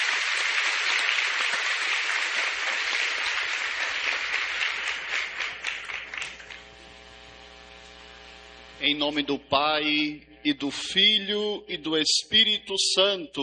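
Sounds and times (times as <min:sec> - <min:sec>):
audience applause: 0:00.0 - 0:06.7
speech: 0:08.8 - 0:13.4.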